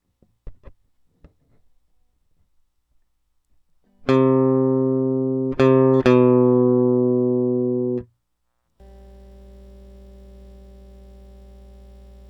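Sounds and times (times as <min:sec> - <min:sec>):
electric guitar: 0:04.0 - 0:08.1, 0:08.8 - 0:12.2.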